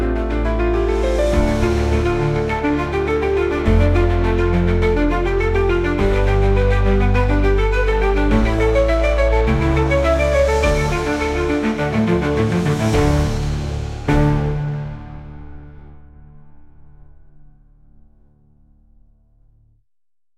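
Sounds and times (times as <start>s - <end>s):
electric cello: 0.2s - 14.8s.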